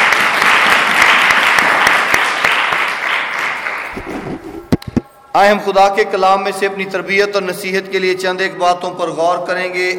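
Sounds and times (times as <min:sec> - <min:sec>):
loud applause: 0:00.0 - 0:04.4
speech: 0:05.4 - 0:09.9.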